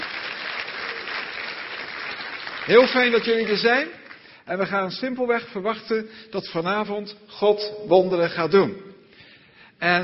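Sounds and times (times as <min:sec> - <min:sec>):
congregation applauding at a church service: 0:00.0 - 0:04.5
speech: 0:02.6 - 0:08.9, 0:09.8 - 0:10.0.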